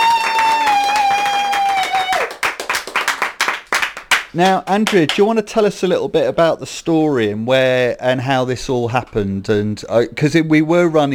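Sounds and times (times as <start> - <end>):
audience applause: 0.0 - 5.2
speech: 4.4 - 11.1.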